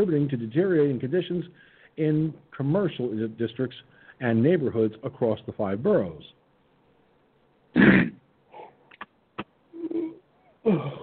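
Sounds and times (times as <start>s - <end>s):
speech: 0.0s - 6.4s
person yawning: 9.8s - 11.0s.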